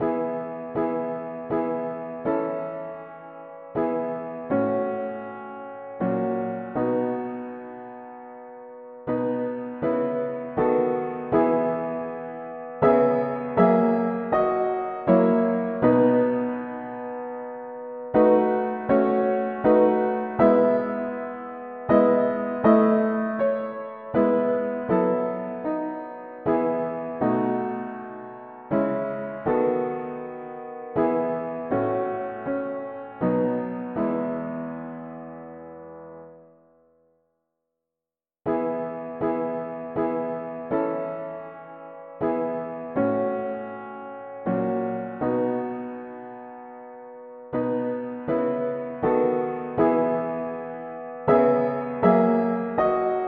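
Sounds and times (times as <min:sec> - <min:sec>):
mono piano playing hymns: 0:00.0 - 0:36.6, 0:38.5 - 0:53.2.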